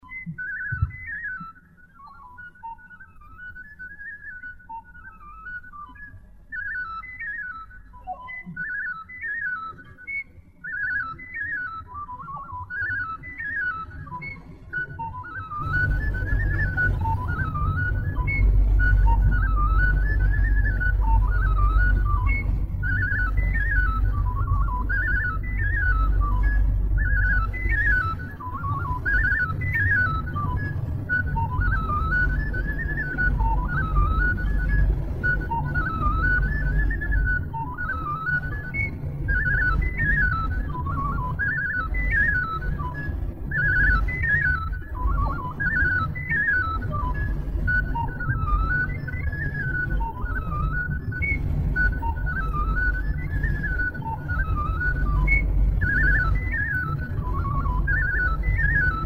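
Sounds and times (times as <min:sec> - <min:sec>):
flute playing old dance tunes and songs: 0:00.0 - 0:59.0.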